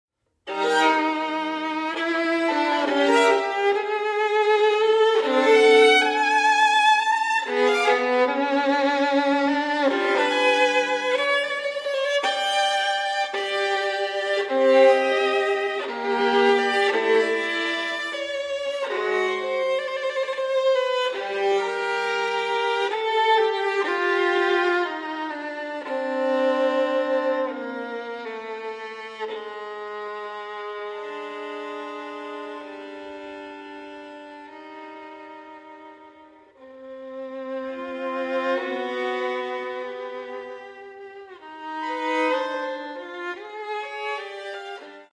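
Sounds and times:
solo violin sonata in G minor: 0:00.3 - 0:45.1.

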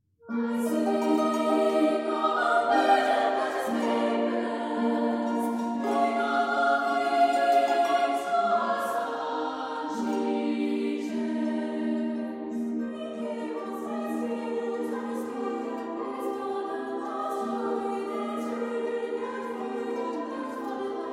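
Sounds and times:
choir singing: 0:00.3 - 0:21.1.

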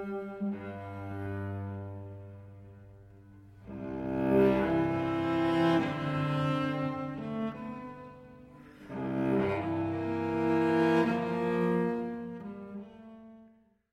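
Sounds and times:
unaccompanied cello piece: 0:00.0 - 0:13.9.

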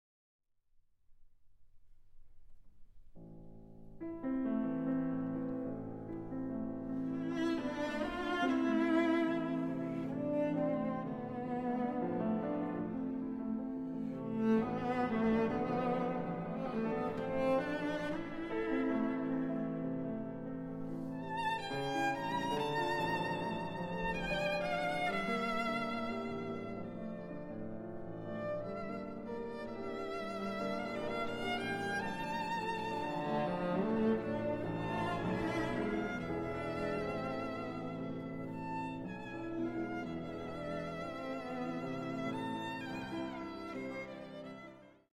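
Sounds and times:
piano trio in A minor: 0:03.1 - 0:44.7.

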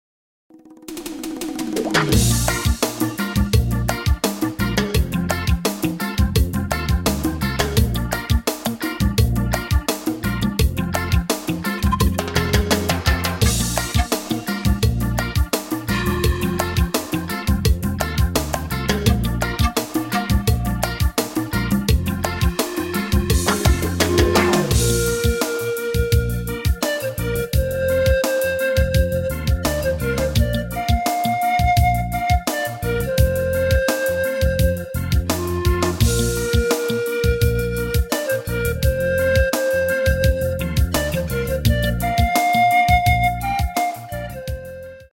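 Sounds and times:
reggae music: 0:00.8 - 0:45.1.

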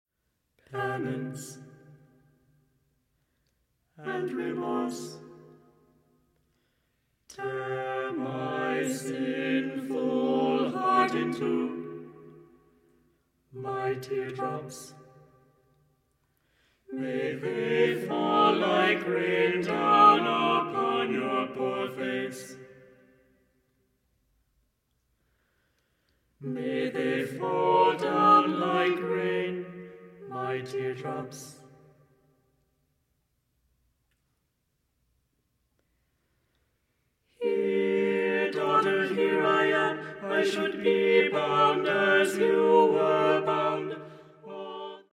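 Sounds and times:
four voices singing: 0:00.7 - 0:01.7, 0:04.0 - 0:05.5, 0:07.3 - 0:12.2, 0:13.6 - 0:15.1, 0:16.9 - 0:22.9, 0:26.4 - 0:31.7, 0:37.3 - 0:45.1.

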